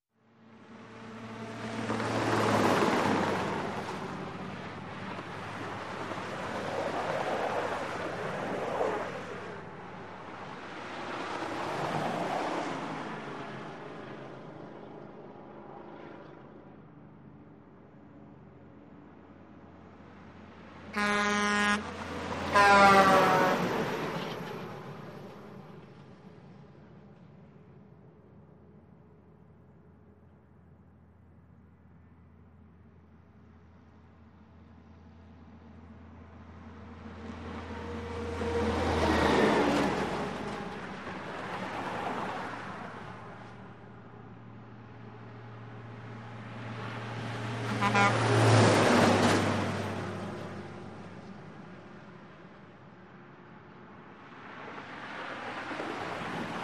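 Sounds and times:
light highway traffic of cars and trucks passing: 0:00.3 - 0:17.5, 0:18.2 - 0:28.8, 0:33.0 - 0:56.6
car horns: 0:20.9 - 0:23.8, 0:47.7 - 0:48.6.

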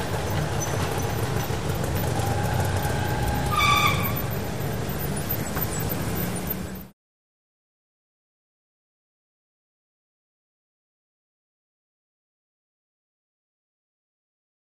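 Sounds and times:
urban ambience in Bangkok Thailand: 0:00.0 - 0:07.0.

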